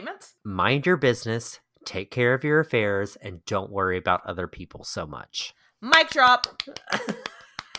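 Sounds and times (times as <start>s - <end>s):
speech: 0.1s - 7.2s
hand claps: 6.1s - 7.7s.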